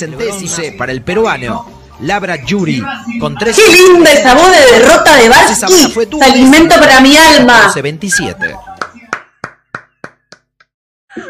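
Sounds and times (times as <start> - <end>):
speech: 0.0 - 8.7
light clapping: 8.8 - 10.7.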